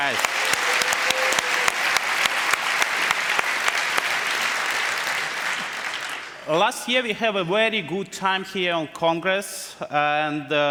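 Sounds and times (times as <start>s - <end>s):
audience applause: 0.0s - 6.6s
speech: 6.5s - 10.7s.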